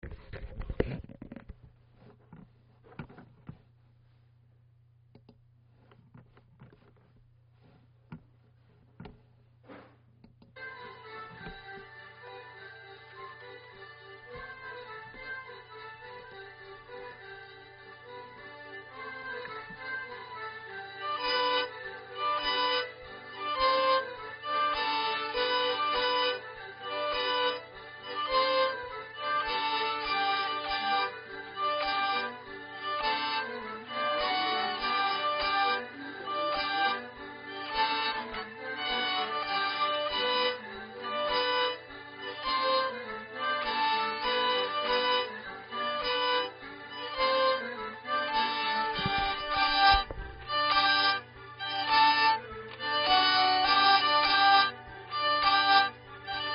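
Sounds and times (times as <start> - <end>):
polka music: 10.6 - 56.5.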